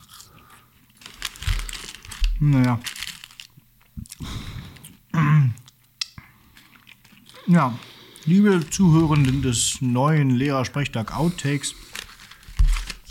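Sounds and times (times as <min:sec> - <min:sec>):
person chewing a french fry: 0:00.0 - 0:09.6
speech: 0:02.4 - 0:02.9, 0:07.5 - 0:11.8.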